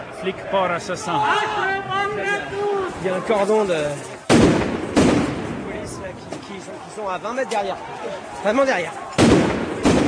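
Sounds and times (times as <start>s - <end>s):
speech: 0.2s - 4.5s, 6.0s - 9.0s
tear gas grenade fired during a street riot: 4.3s - 5.8s, 9.2s - 10.0s.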